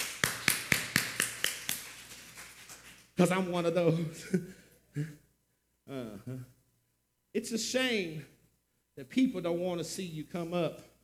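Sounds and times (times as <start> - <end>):
hands clapping in a steady rhythm: 0.0 - 3.1
speech: 3.2 - 5.2, 5.9 - 6.6, 7.3 - 8.3, 9.0 - 10.9.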